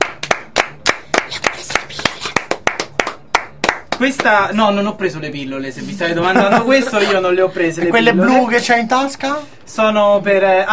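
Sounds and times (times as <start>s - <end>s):
applause: 0.0s - 4.3s
speech: 4.0s - 10.7s.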